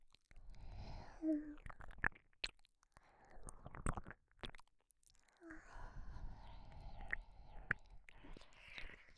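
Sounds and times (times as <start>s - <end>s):
breathy voice in right ear: 0.8s - 1.6s, 5.4s - 8.8s.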